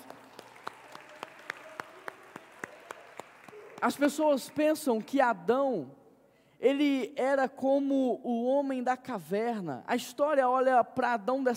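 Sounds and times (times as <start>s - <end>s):
audience applause: 0.0s - 5.0s
speech: 3.8s - 6.0s, 6.6s - 11.5s.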